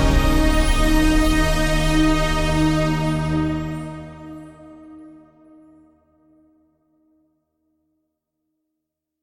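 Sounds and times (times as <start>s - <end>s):
hymn music at 125 bpm: 0.0s - 5.6s.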